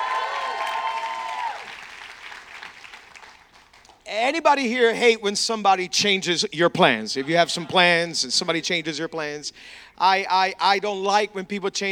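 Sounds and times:
church congregation cheering and applauding for Jesus during a worship service: 0.0s - 4.0s
speech: 4.1s - 11.9s.

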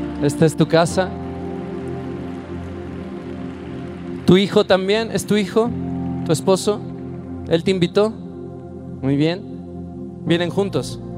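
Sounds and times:
crowd clapping: 0.0s - 7.0s
speech: 0.2s - 1.2s, 4.3s - 6.9s, 7.5s - 8.2s, 9.0s - 9.5s, 10.2s - 11.0s.

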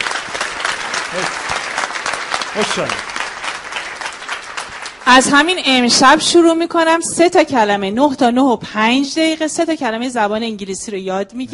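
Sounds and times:
audience applause: 0.0s - 5.6s
speech: 1.1s - 1.5s, 2.5s - 3.1s, 5.1s - 11.5s.

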